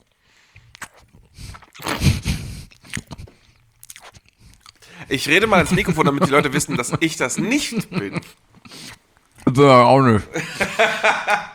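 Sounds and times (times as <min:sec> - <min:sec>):
chewing a leftover piece of cheesecake: 0:00.0 - 0:06.9, 0:07.9 - 0:09.7
laughter: 0:05.0 - 0:08.4, 0:10.2 - 0:11.5
speech: 0:05.1 - 0:08.4, 0:09.6 - 0:11.5.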